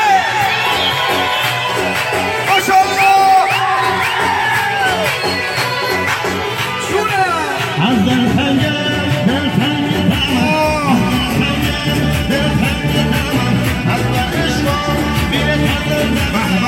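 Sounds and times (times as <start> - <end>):
concert crowd in Faruj cheering: 0.0 - 16.6
concert crowd screaming and shouting: 0.0 - 16.6
shrill whistles from a concert crowd: 0.3 - 6.0.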